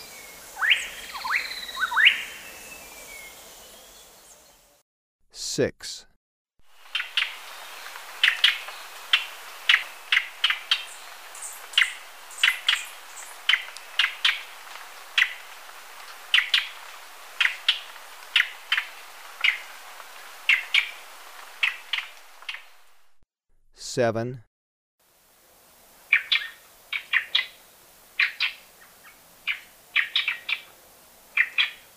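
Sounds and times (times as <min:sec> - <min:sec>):
plain-tailed wren chattering calls: 0:00.5 - 0:02.4, 0:06.7 - 0:22.9, 0:26.1 - 0:27.6, 0:29.5 - 0:30.7, 0:31.4 - 0:31.8
speech: 0:05.6 - 0:06.1, 0:24.0 - 0:24.5.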